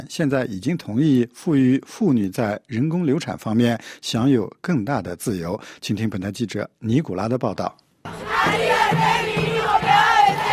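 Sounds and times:
speech: 0.0 - 9.2
crowd of Argentine women cheering and chanting in celebration of abortion-rights vote: 8.1 - 10.5.

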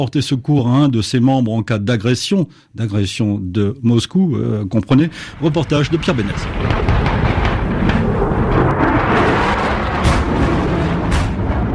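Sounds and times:
speech: 0.0 - 7.1
explosions: 5.0 - 11.7
fighter-bombers: 5.1 - 11.7
naval artillery fire: 5.2 - 11.7.

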